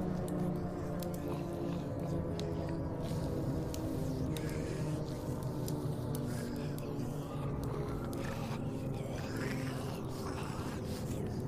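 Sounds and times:
zombie moaning and groaning: 0.0s - 11.4s.

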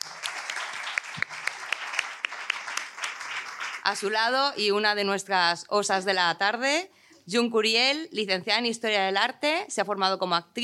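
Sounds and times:
audience applause: 0.0s - 4.1s
speech: 3.9s - 10.6s.

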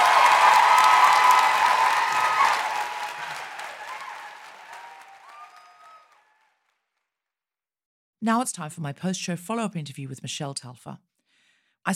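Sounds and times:
audience applause: 0.0s - 6.8s
speech: 8.2s - 11.1s.

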